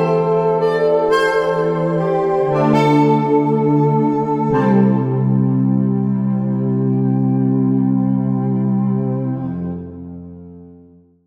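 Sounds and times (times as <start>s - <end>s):
baroque string music: 0.0s - 11.2s.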